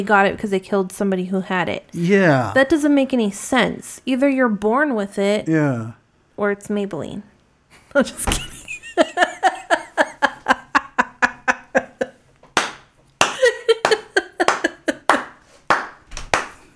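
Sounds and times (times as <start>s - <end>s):
speech: 0.0s - 7.3s, 7.9s - 9.3s
laughter: 8.2s - 12.2s, 13.2s - 15.4s
hand clapping: 12.4s - 16.7s.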